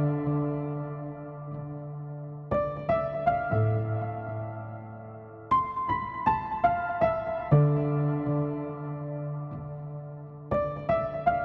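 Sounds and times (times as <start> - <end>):
piano playing in A minor at 120 BPM: 0.0 - 11.4.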